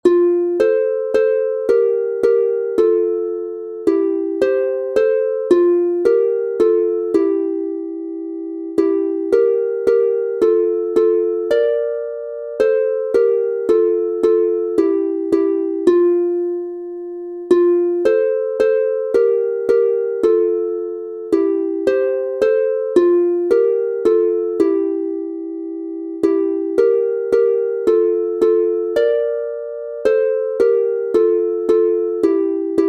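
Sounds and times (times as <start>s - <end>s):
harp in F major: 0.0s - 32.8s.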